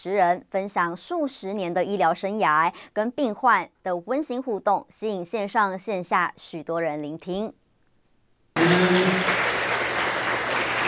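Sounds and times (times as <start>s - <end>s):
speech: 0.0s - 7.6s
audience applause: 8.6s - 10.8s.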